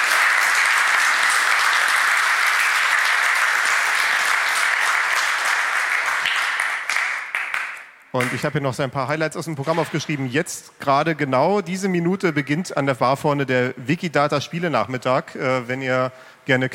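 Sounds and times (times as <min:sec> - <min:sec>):
audience applause: 0:00.0 - 0:07.8
speech: 0:08.2 - 0:16.7.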